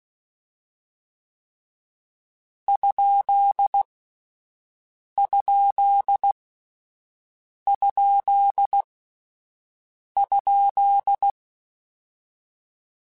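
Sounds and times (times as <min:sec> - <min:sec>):
Morse code CW code groups: 0:02.7 - 0:03.8, 0:05.2 - 0:06.4, 0:07.7 - 0:08.8, 0:10.2 - 0:11.4.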